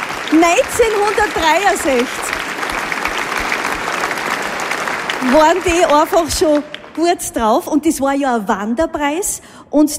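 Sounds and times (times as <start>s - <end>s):
audience applause: 0.0s - 7.2s
speech: 0.3s - 2.4s, 5.2s - 9.9s.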